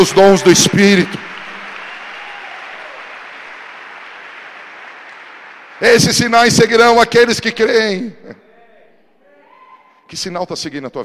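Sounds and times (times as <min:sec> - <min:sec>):
speech: 0:00.0 - 0:01.3, 0:05.8 - 0:08.4, 0:10.1 - 0:11.0
audience applause: 0:00.0 - 0:06.4.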